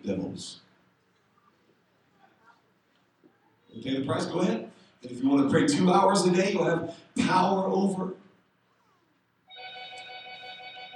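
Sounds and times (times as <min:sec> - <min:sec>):
speech: 0:00.0 - 0:00.6, 0:03.8 - 0:08.2
cell phone ringing loudly: 0:09.5 - 0:10.9.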